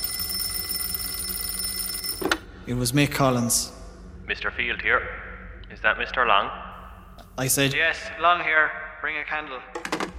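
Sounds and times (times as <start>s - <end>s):
telephone ringing: 0.0s - 2.4s
speech: 2.7s - 6.6s, 7.4s - 10.0s.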